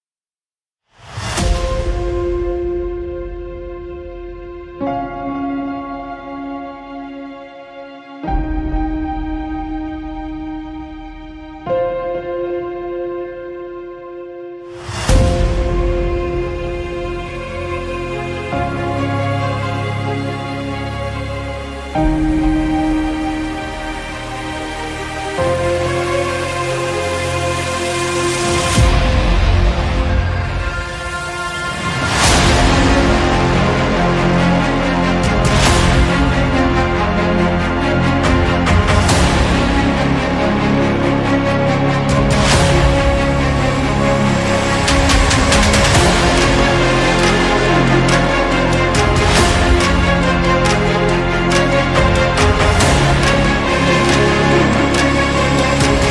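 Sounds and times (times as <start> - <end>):
hybrid epic trailer music: 0.9 - 56.0.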